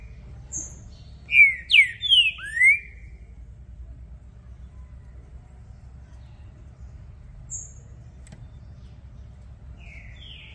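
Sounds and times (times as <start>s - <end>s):
green-winged saltator singing descending whistles: 0.5s - 3.2s.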